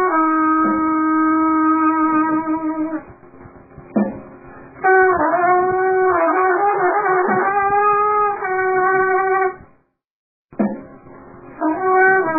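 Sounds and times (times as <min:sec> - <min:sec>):
clarinet accompaniment: 0:00.0 - 0:03.1, 0:04.8 - 0:09.7, 0:11.6 - 0:12.3.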